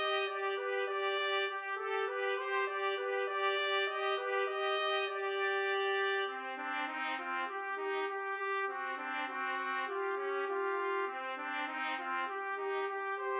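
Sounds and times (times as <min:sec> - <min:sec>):
trumpet trio playing: 0:00.0 - 0:13.3.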